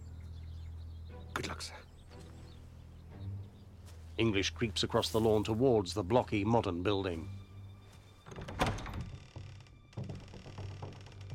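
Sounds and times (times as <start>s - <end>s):
speech: 1.2s - 2.3s, 4.2s - 7.4s
front door pushed open: 8.2s - 11.3s.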